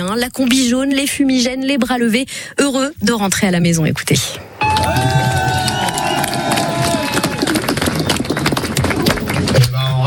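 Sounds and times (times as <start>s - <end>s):
speech: 0.0s - 5.4s
sustained horn-like tones: 4.6s - 7.1s
dense crowd cheering and clapping for a returning sailor: 4.6s - 9.8s.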